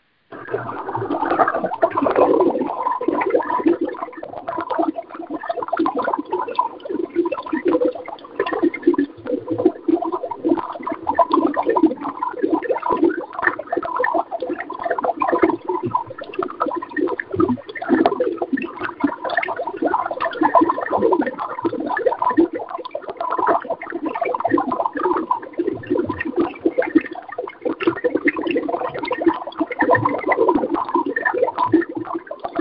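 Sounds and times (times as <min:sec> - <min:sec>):
bubbling water: 0:00.3 - 0:32.5.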